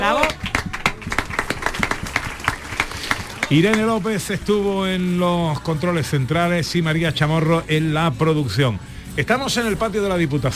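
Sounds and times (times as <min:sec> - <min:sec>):
audience applause: 0:00.0 - 0:04.7
speech: 0:03.5 - 0:10.5.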